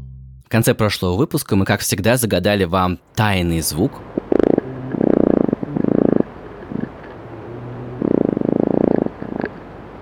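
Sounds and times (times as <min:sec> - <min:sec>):
speech: 0:00.5 - 0:04.2
fruit fly courtship song: 0:04.1 - 0:09.6.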